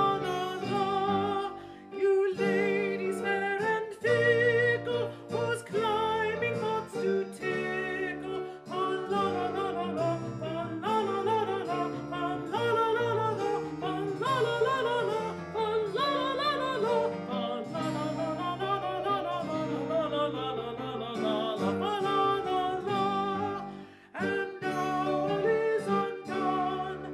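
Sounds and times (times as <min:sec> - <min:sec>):
slower alto voice singing: 0:00.0 - 0:27.1.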